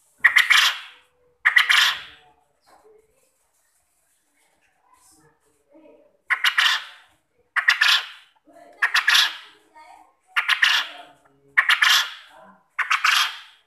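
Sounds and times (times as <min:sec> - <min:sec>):
quail calling with soft chirps and loud harsh bursts as a lure: 0:00.2 - 0:02.2, 0:06.3 - 0:09.6, 0:10.4 - 0:13.6.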